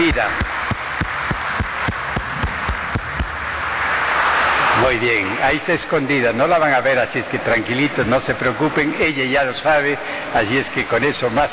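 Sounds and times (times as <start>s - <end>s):
applause: 0.0s - 4.9s
speech: 0.1s - 0.5s, 4.9s - 11.5s.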